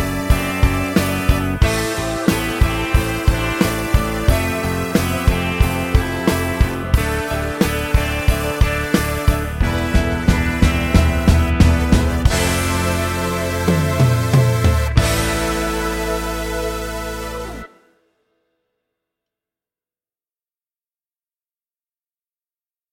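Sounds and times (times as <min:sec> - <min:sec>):
KB drums: 0:00.0 - 0:17.7.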